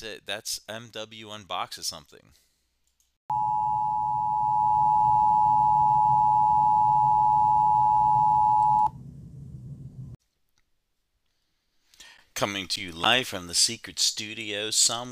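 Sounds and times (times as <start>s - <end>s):
speech: 0.0s - 2.5s, 12.4s - 15.1s
emergency broadcast sine-wave alert tone: 3.3s - 8.9s
low rumbling hum: 3.4s - 10.2s.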